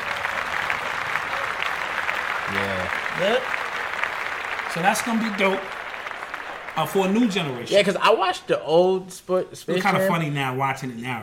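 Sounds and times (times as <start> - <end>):
applause of many hands clapping: 0.0 - 7.9
speech: 3.2 - 3.6, 4.7 - 5.8, 6.8 - 11.2.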